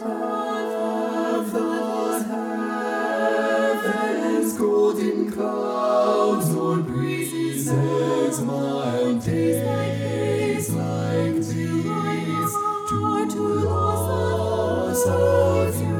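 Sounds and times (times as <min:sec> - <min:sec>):
second alto voice singing: 0:00.0 - 0:15.9.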